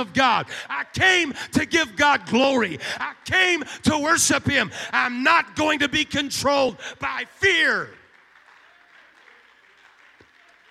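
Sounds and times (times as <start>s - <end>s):
speech: 0.0s - 8.0s
audience clapping hands: 7.2s - 10.6s.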